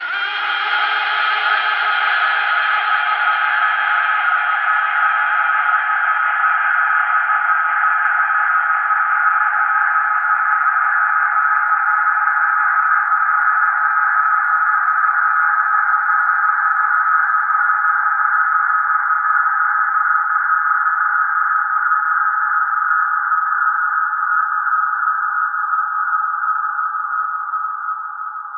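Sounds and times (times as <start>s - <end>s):
reverb atmospheres: 0.0s - 28.5s.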